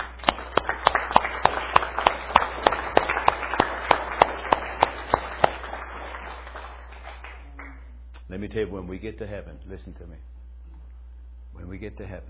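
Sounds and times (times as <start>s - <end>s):
audience applauding: 0.0s - 7.8s
speech: 8.4s - 10.4s, 11.7s - 12.2s.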